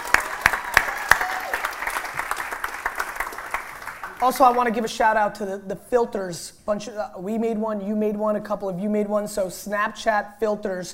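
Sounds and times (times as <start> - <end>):
audience applause: 0.0 - 4.6
speech: 4.2 - 10.9.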